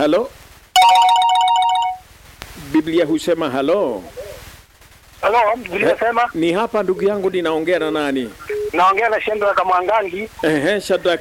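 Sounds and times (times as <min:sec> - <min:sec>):
speech: 0:00.0 - 0:00.4, 0:02.7 - 0:04.2, 0:05.2 - 0:11.1
electronic telephone ringtone on a radio call-in line: 0:00.8 - 0:02.0.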